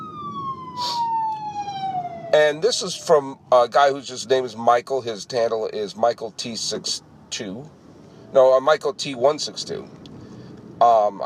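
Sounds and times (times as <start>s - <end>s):
fire engine siren passing by: 0.0s - 3.4s
speech: 2.3s - 10.0s, 10.8s - 11.2s.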